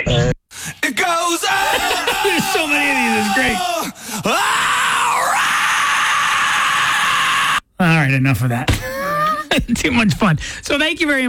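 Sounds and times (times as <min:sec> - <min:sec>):
person screaming rock-style: 0:01.2 - 0:07.6, 0:08.8 - 0:09.5
speech: 0:08.2 - 0:08.9, 0:09.6 - 0:11.2.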